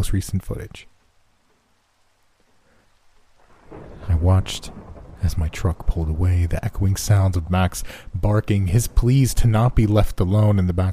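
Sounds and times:
speech: 0.0 - 0.9, 4.2 - 10.9
heavy rain: 0.1 - 10.9
thunder rumble: 3.2 - 10.9.

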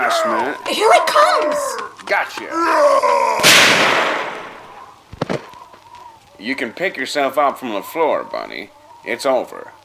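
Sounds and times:
speech: 0.0 - 4.1, 6.4 - 9.8
powerful gunshot from a gun with adjusted sights: 3.4 - 4.6.

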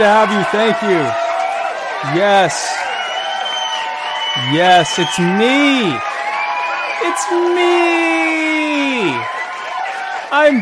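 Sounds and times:
speech: 0.0 - 1.2, 2.0 - 2.9, 4.4 - 6.1, 7.0 - 9.4, 10.3 - 10.5
cheering whoop: 0.0 - 10.5
crowd noise: 0.0 - 10.5.

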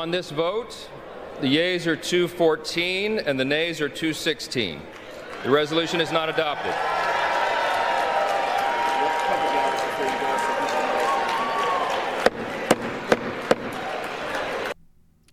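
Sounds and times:
speech: 0.1 - 7.0
crowd cheering and applauding in a legislative chamber: 5.0 - 14.8
sharp knocks: 12.2 - 13.8.

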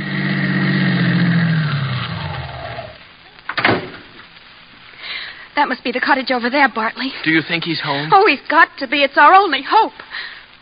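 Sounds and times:
car driving up and stopping, radio drama sound effect: 0.0 - 3.1
speech: 5.6 - 10.4.

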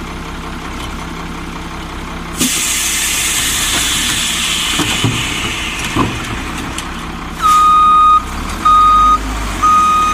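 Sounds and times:
garbage truck engine idling: 0.0 - 10.1
clanks: 3.3 - 7.7
loud reversing beeps: 7.4 - 10.1.

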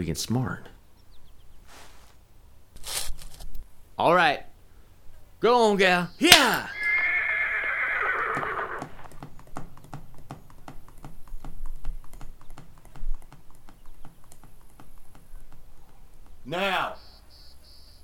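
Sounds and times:
speech: 0.0 - 0.8, 4.0 - 4.5, 5.4 - 6.8
mare hooves clip-clopping: 6.2 - 17.2
mare whinnying: 6.3 - 9.2.

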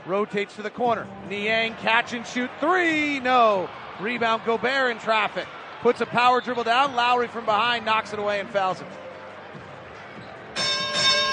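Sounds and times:
speech: 0.1 - 9.0
bell chime marking 30 points: 10.6 - 11.3.

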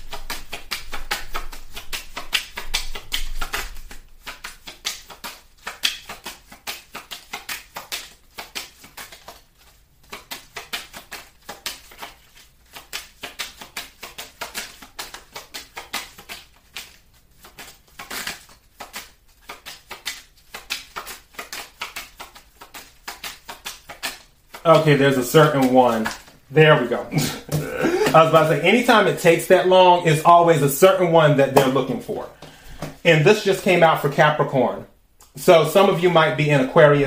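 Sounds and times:
tarot cards shuffling: 0.0 - 29.5
speech: 24.6 - 32.4, 33.0 - 37.0.

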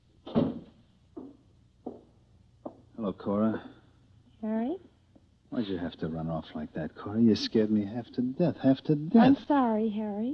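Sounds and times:
door shutting with a heavy booming thud: 0.2 - 1.3
light knocks: 0.3 - 2.8
speech: 3.0 - 3.8, 4.4 - 4.9, 5.6 - 10.3.

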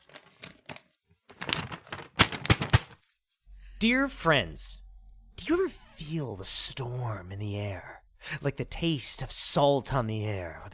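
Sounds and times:
paper letter rustling and crinkling: 0.0 - 3.4
speech: 3.8 - 4.8, 5.4 - 10.7.

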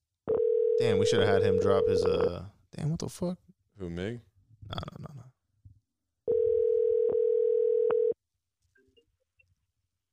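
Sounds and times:
phone call ringback tone: 0.3 - 1.9, 6.3 - 8.2
speech: 0.8 - 5.1.

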